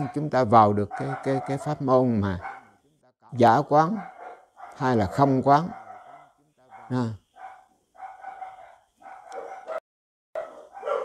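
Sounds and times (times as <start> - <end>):
speech: 0.0 - 2.5, 3.3 - 4.1, 4.8 - 5.8, 6.9 - 7.2
dogs barking: 0.0 - 2.8, 3.8 - 9.8, 10.4 - 11.0.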